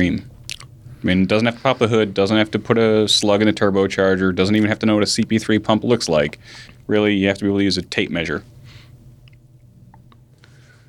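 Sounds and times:
speech: 0.0s - 0.3s, 1.0s - 8.6s
chewing gum: 0.4s - 0.8s.

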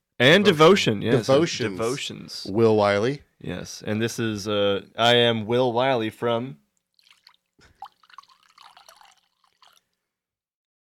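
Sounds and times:
speech: 0.2s - 6.6s
alcohol poured out, trickling and splashing: 6.8s - 10.0s.

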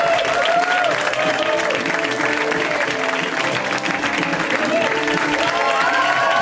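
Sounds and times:
cheering and whoops: 0.0s - 1.8s, 4.6s - 6.4s
large crowd audience applause: 0.0s - 6.4s.

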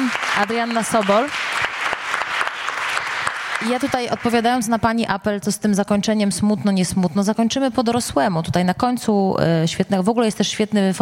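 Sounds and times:
audience applause: 0.0s - 4.7s
speech: 0.4s - 1.4s, 3.6s - 11.0s.

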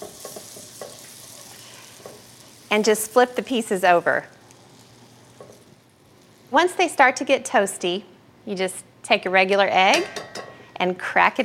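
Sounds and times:
butter sizzling in a skillet: 0.0s - 7.7s
sharp crackles: 0.6s - 6.6s
speech: 2.7s - 4.4s, 6.5s - 10.2s, 10.8s - 11.4s.

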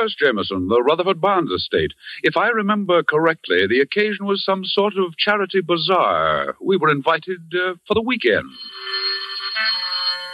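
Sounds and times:
speech: 0.0s - 9.0s
telephone ringing with electronic trill: 8.4s - 10.3s.

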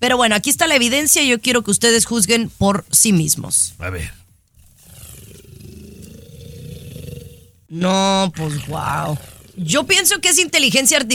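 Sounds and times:
speech: 0.0s - 4.2s, 7.7s - 11.1s
loud snoring: 4.5s - 7.7s, 8.4s - 9.9s.

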